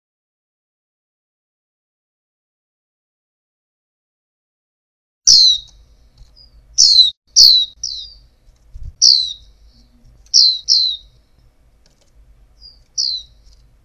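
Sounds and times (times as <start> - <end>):
female white-eye downward-slurred chirps: 5.3 - 11.3, 12.5 - 13.6.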